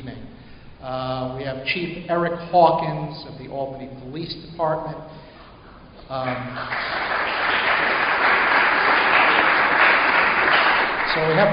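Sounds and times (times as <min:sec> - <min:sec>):
speech: 0:00.8 - 0:05.3, 0:06.1 - 0:08.0, 0:11.1 - 0:11.5
audience applause: 0:06.2 - 0:11.5.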